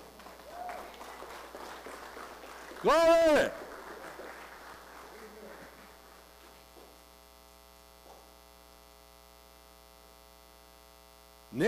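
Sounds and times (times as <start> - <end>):
audience hand clapping: 0.0 - 7.0
speech: 2.8 - 3.6.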